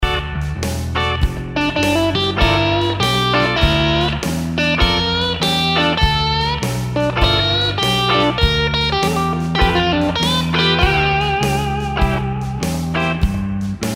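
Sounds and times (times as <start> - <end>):
guitar lick: 0.0 - 13.9.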